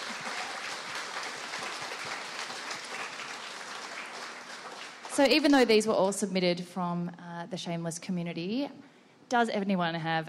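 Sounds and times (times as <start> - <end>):
audience applause: 0.0 - 5.5
speech: 5.2 - 10.2.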